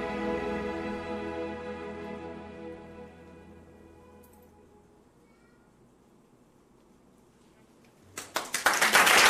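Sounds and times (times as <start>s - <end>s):
orchestral Irish tune: 0.0s - 5.1s.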